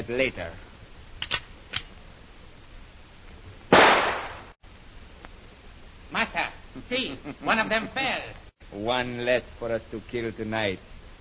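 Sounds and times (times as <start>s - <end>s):
speech: 0.1s - 1.4s, 6.1s - 10.9s
rifle shot fired as a warning: 3.7s - 4.5s.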